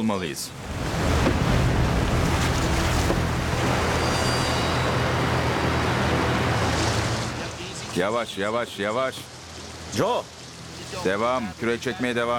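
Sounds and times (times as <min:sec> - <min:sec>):
speech: 0:00.0 - 0:01.4, 0:08.0 - 0:09.3, 0:09.9 - 0:12.3
breaking white-water waves: 0:00.5 - 0:08.0.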